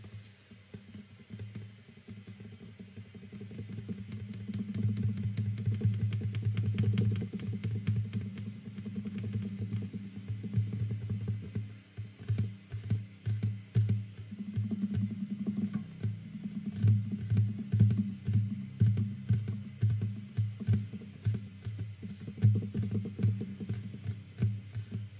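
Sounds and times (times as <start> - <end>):
fast tapping and strumming on a guitar: 2.2 - 25.1.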